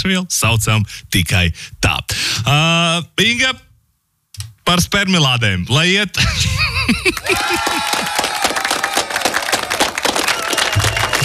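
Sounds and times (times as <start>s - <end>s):
speech: 0.0s - 3.7s, 4.7s - 7.8s
laughter: 6.2s - 9.2s
crowd applause: 7.0s - 11.2s.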